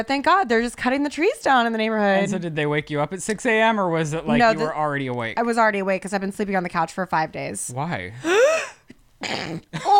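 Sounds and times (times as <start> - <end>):
speech: 0.0 - 8.7, 9.3 - 9.9
person sneezing: 8.5 - 9.9.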